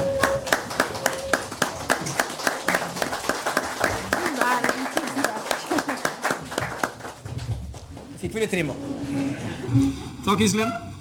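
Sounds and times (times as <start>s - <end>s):
audience applause: 0.0s - 8.6s
speech: 8.4s - 10.9s.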